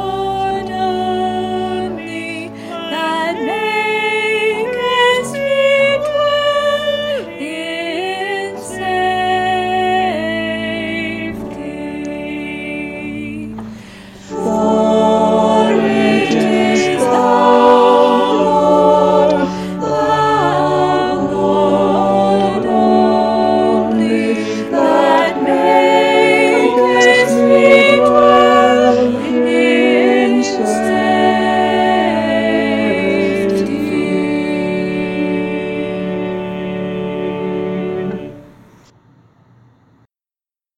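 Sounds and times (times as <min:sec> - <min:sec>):
virtual choir singing: 0:00.0 - 0:38.9.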